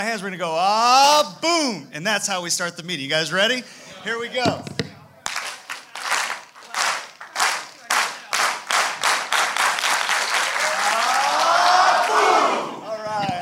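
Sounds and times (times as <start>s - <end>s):
speech: 0.0s - 4.9s
group slow clap building to fast clap: 5.2s - 12.8s
people cheering: 5.3s - 13.3s.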